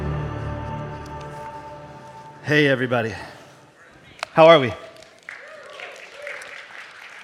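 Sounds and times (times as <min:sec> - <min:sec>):
speech: 0:02.5 - 0:03.3, 0:04.4 - 0:04.9
audience clapping: 0:04.5 - 0:07.2.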